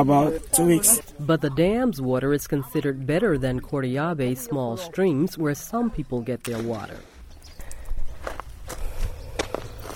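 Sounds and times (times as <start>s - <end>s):
speech: 0.0s - 7.1s
footsteps walking uphill on rough ground: 6.5s - 9.9s.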